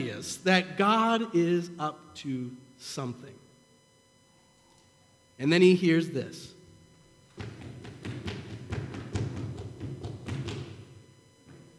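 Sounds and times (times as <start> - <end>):
speech: 0.0 - 3.4, 5.4 - 6.6
running footsteps next to a carriage: 7.3 - 11.7.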